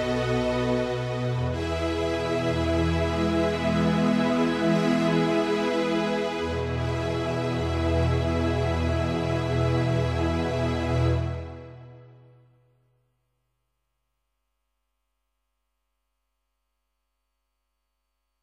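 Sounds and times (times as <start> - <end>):
strings: 0.0 - 12.2.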